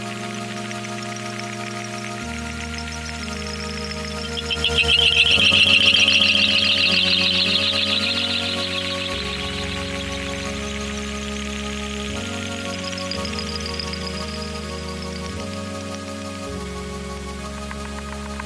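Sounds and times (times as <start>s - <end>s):
bells ringing: 2.4s - 16.3s.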